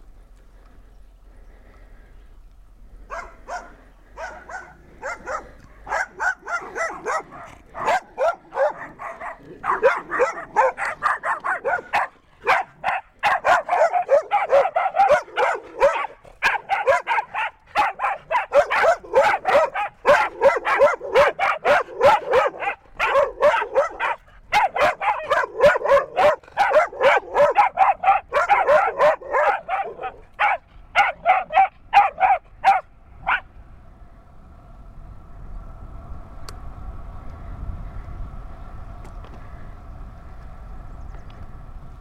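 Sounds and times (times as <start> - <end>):
dogs yapping: 3.1 - 33.5.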